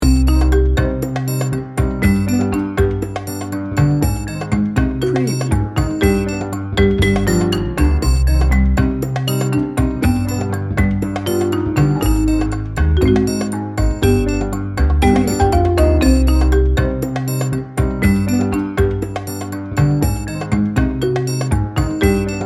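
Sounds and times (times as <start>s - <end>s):
tango music loop: 0.0s - 22.4s.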